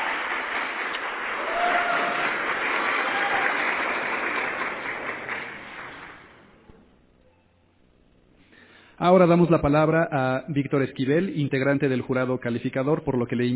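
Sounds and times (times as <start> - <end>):
audience applause: 0.0 - 6.5
speech: 9.0 - 13.5.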